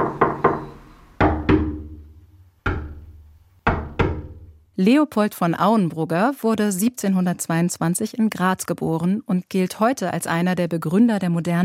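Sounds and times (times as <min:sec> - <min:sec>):
fingers knocking on wooden barrel: 0:00.0 - 0:04.5
speech: 0:04.8 - 0:11.6.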